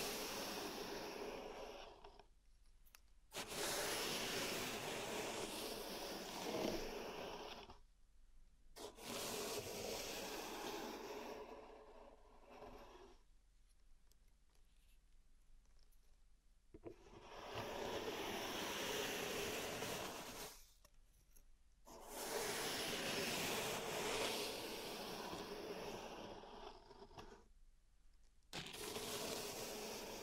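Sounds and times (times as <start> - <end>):
pink salt raked and scraped in a zen garden tray: 0.0 - 1.9, 3.3 - 7.6, 8.8 - 13.2, 17.3 - 20.7, 21.9 - 27.0, 28.6 - 30.2.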